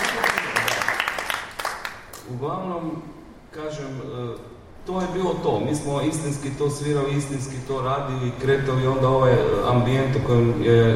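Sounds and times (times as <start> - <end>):
audience clapping for a performer: 0.0 - 2.3
speech: 2.3 - 10.9.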